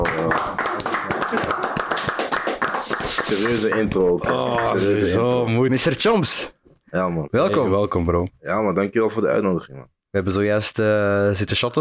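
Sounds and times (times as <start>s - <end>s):
small round of applause greeting a guest: 0.0s - 5.2s
speech: 3.4s - 11.8s.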